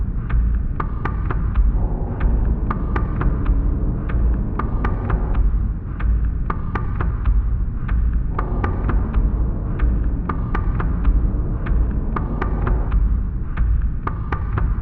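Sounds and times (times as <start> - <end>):
drum bed loop: 0.3 - 14.7.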